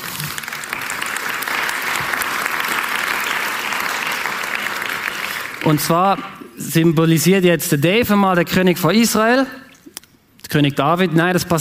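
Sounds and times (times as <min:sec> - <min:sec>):
audience applause: 0:00.0 - 0:05.9
speech: 0:05.6 - 0:09.6, 0:10.5 - 0:11.6.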